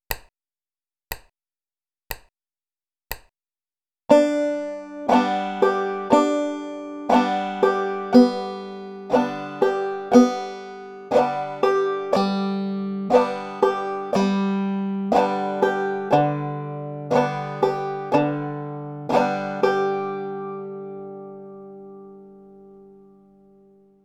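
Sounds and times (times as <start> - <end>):
banjo bum ditty picking with string climbing: 4.1 - 23.2.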